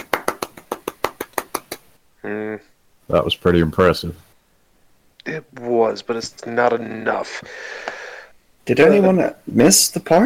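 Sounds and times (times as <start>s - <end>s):
golf claps: 0.0s - 1.9s
speech: 2.2s - 4.3s, 5.4s - 8.0s, 8.7s - 10.2s.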